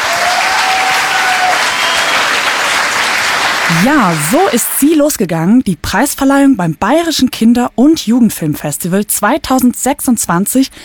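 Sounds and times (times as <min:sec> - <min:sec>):
crowd applause: 0:00.0 - 0:04.5
speech: 0:03.8 - 0:10.8.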